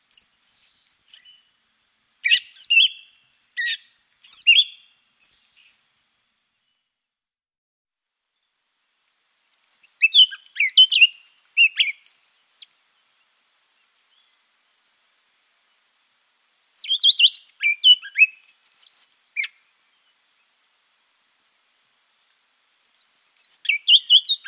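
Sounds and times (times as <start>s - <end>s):
Brown Trembler calling in Guadeloupe: 0.0s - 1.5s, 2.2s - 5.9s, 9.5s - 13.0s, 16.8s - 20.5s, 21.1s - 24.4s.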